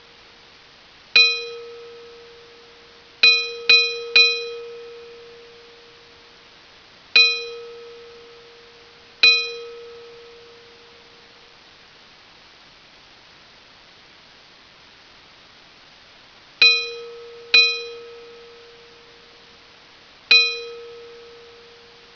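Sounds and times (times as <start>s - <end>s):
bells ringing: 1.2s - 6.2s, 7.2s - 11.2s, 16.6s - 19.4s, 20.3s - 22.1s.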